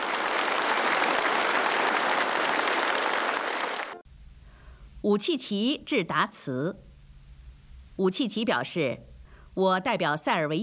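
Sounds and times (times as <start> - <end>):
prolonged applause from the audience: 0.0 - 4.0
speech: 5.0 - 6.9, 8.0 - 10.6.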